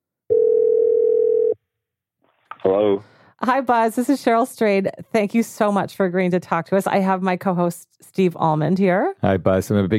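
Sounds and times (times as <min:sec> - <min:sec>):
telephone call ringing: 0:00.3 - 0:01.6
speech: 0:02.6 - 0:09.9.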